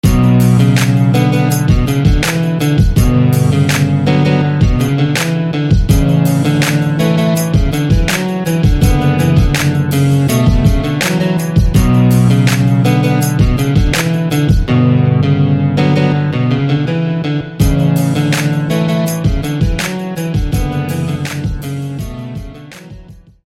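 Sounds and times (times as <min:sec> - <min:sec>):
guitar: 0:00.0 - 0:23.4.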